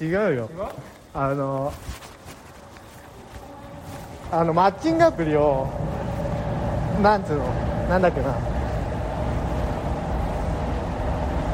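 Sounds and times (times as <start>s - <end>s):
speech: 0.0s - 2.0s, 4.3s - 5.9s, 7.0s - 8.5s
passing train rumbling: 2.7s - 11.5s.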